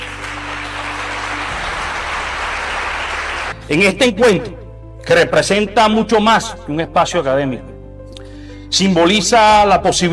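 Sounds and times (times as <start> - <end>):
audience applause: 0.0 - 3.6
speech: 3.7 - 7.7, 8.7 - 10.1.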